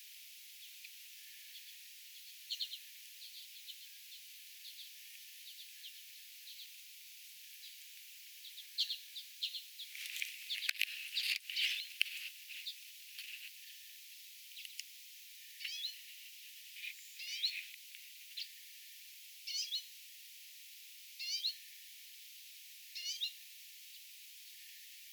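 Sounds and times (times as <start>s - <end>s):
redpolls calling along the bird tower path: 0.6s - 6.8s, 7.5s - 13.9s, 14.5s - 18.6s, 19.5s - 19.9s, 23.0s - 23.4s.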